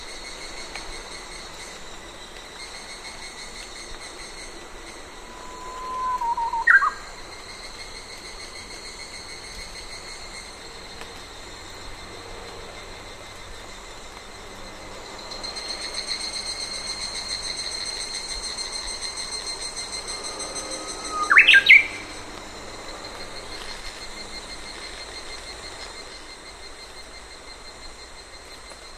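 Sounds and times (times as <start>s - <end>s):
summer rain in Sannohe forest: 0.0s - 28.9s
birds in Sannohe forest: 5.8s - 7.0s, 20.1s - 22.2s
nearby road traffic: 19.4s - 24.7s.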